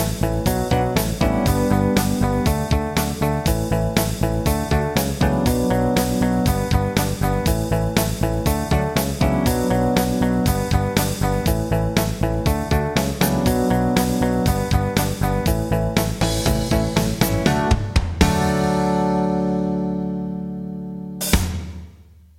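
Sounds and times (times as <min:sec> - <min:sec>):
country rock music: 0:00.0 - 0:21.4.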